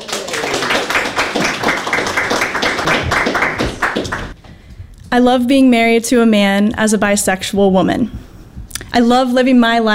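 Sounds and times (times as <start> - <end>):
audience clapping: 0.0 - 4.4
speech: 5.1 - 8.2, 8.9 - 9.9.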